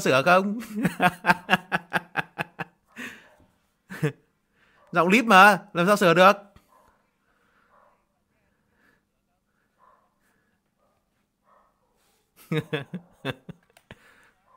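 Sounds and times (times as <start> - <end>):
speech: 0.0 - 1.7, 4.0 - 4.2, 4.9 - 6.5, 12.5 - 13.5
laughter: 0.5 - 3.2, 3.9 - 4.2, 12.4 - 14.3
dog barking outside: 2.9 - 3.5, 4.7 - 5.1, 6.6 - 8.1, 9.7 - 13.5, 14.4 - 14.5.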